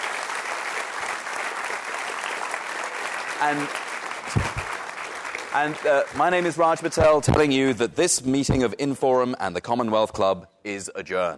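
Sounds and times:
crowd audience applause: 0:00.0 - 0:07.3
speech: 0:03.4 - 0:04.6, 0:05.5 - 0:11.3.

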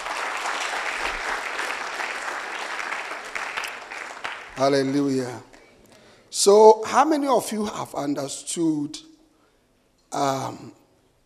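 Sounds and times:
audience clapping hands: 0:00.0 - 0:05.7
speech: 0:04.6 - 0:05.5, 0:06.4 - 0:09.1, 0:10.1 - 0:10.8.

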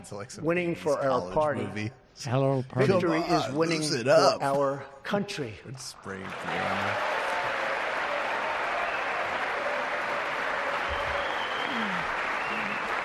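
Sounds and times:
speech: 0:00.0 - 0:07.1
crowd applause during a speech: 0:06.1 - 0:13.0.

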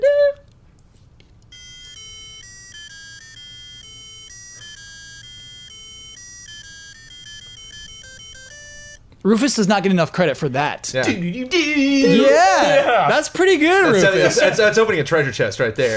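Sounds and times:
ending of a played song: 0:01.5 - 0:09.0
speech: 0:09.2 - 0:15.9
laughter: 0:12.1 - 0:15.0.

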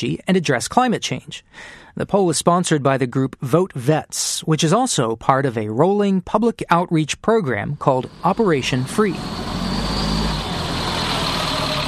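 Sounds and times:
speech: 0:00.0 - 0:09.7
large biodiesel bus engine idling: 0:07.8 - 0:11.8.

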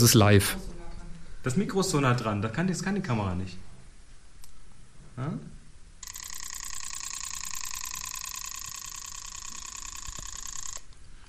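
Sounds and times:
speech: 0:00.0 - 0:00.6, 0:01.4 - 0:03.7, 0:05.2 - 0:05.5
small pocket sewing machine running: 0:06.0 - 0:10.9.

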